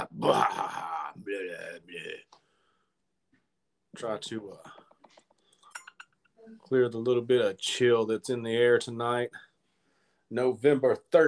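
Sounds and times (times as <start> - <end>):
man clearing throat: 0.0 - 1.1
speech: 0.3 - 0.7, 4.0 - 4.8, 6.5 - 9.5, 10.3 - 11.2.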